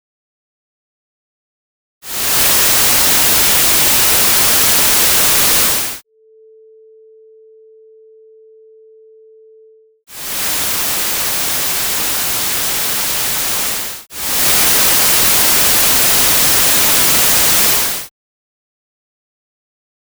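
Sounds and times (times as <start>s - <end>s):
noise: 2.0s - 6.0s, 10.1s - 18.1s
binaural sine tones: 5.0s - 10.0s.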